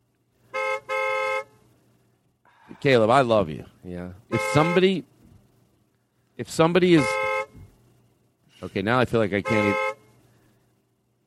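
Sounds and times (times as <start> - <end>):
faint low hum: 0.0 - 11.2
car horn honking: 0.4 - 1.8, 4.3 - 5.1, 6.9 - 7.7, 9.2 - 10.3
speech: 2.8 - 5.1, 6.4 - 7.2, 8.6 - 9.9.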